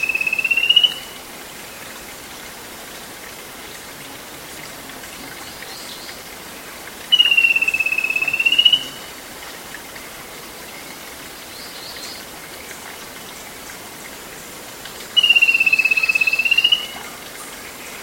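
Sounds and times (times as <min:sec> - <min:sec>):
bird whistle call: 0:00.0 - 0:01.2, 0:07.1 - 0:09.0, 0:15.2 - 0:17.0
background hiss: 0:00.0 - 0:18.0.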